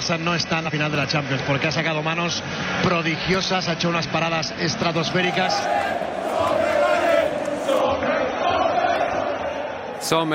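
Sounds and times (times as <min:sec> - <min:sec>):
speech: 0:00.1 - 0:06.1, 0:10.0 - 0:10.3
stadium crowd of football fans roaring and chanting: 0:04.2 - 0:10.3.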